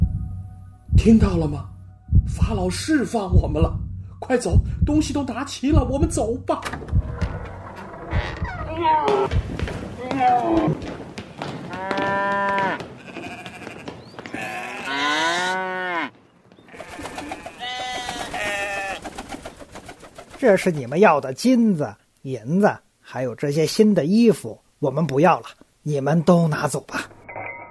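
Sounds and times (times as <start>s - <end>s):
speech: 1.0s - 1.7s, 2.3s - 7.2s, 8.8s - 9.5s, 10.1s - 10.9s, 20.4s - 27.1s
cattle lowing while driven off: 6.9s - 9.3s, 11.7s - 19.1s
sheep bleating while driven off: 11.7s - 16.1s, 16.7s - 19.0s.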